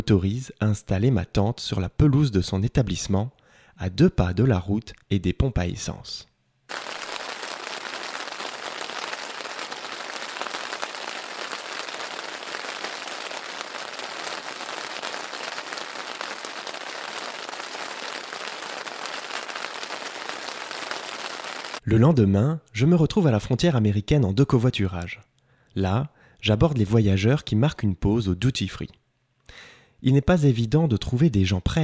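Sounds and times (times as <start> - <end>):
speech: 0.0 - 6.9, 21.9 - 31.8
steady rain: 6.7 - 21.8.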